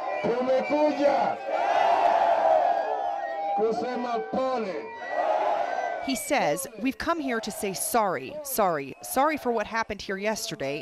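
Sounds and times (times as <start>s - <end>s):
enthusiastic crowd of supporters cheering: 0.0s - 10.7s
speech: 0.2s - 1.8s, 3.6s - 5.1s, 6.0s - 10.7s.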